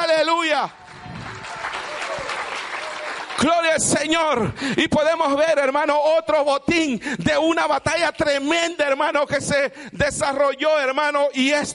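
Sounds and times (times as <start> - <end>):
speech: 0.2 - 0.9, 3.4 - 11.7
audience applauding: 0.7 - 4.4.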